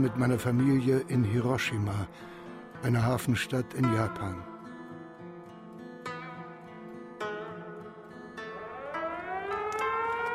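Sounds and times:
speech: 0:00.0 - 0:04.5
air raid siren wailing: 0:08.4 - 0:10.3.

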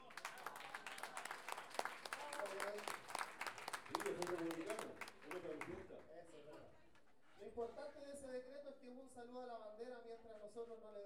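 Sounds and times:
audience applause at a folk poetry celebration: 0:00.0 - 0:06.1
speech: 0:07.6 - 0:11.0.

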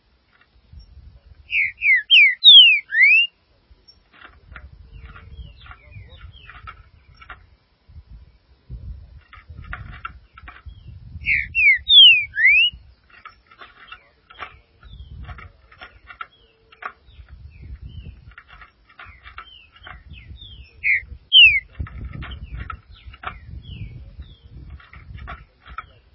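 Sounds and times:
green-winged saltator song: 0:01.5 - 0:03.3, 0:11.2 - 0:12.8, 0:20.8 - 0:21.7.

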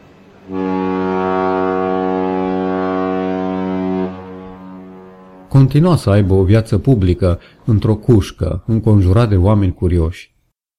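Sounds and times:
long deep steamship horn blast on arrival: 0:00.4 - 0:06.3
speech: 0:05.6 - 0:10.3.

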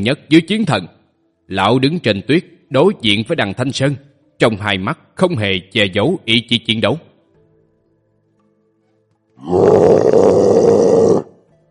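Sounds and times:
speech: 0:00.0 - 0:07.1, 0:09.4 - 0:10.6
loud beast roar: 0:09.4 - 0:11.4.

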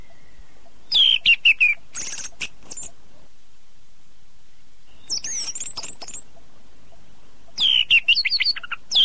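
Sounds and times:
Oriental magpie-robin chirping and twittering: 0:00.8 - 0:02.9, 0:04.9 - 0:09.0.

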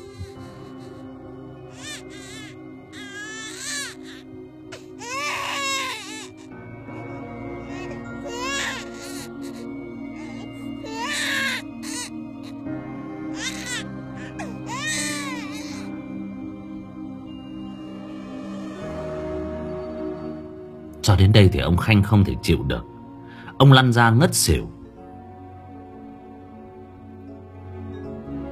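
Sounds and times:
newborn baby crying: 0:00.0 - 0:16.1
speech: 0:21.0 - 0:22.9, 0:23.6 - 0:24.8.

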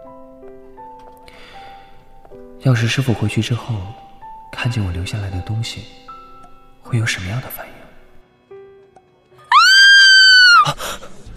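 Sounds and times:
speech: 0:02.6 - 0:04.0, 0:04.6 - 0:06.0, 0:06.9 - 0:07.7
woman's high-pitched terrified scream in an aircraft cabin: 0:09.5 - 0:10.8.

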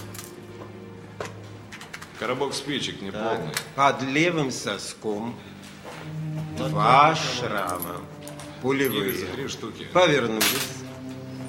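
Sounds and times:
speech: 0:02.2 - 0:05.6, 0:06.6 - 0:10.9
three keys and a pocket watch with chain set down on a hard surface: 0:07.5 - 0:09.4.

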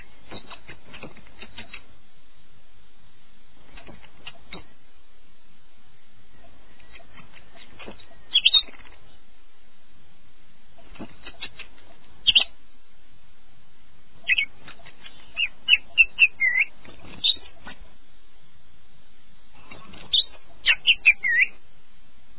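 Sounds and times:
canary singing a high warbling trill in the early morning: 0:14.2 - 0:17.6, 0:19.6 - 0:21.6.

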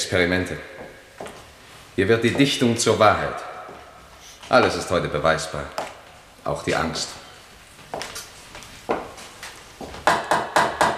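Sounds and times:
speech: 0:00.1 - 0:00.7, 0:02.0 - 0:03.5, 0:04.5 - 0:05.8, 0:06.4 - 0:07.2
knocking: 0:10.0 - 0:10.9.

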